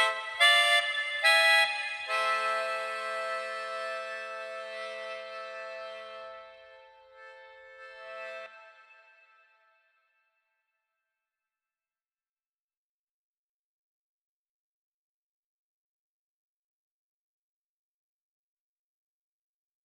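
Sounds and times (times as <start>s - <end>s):
melodica solo: 0.0s - 9.3s.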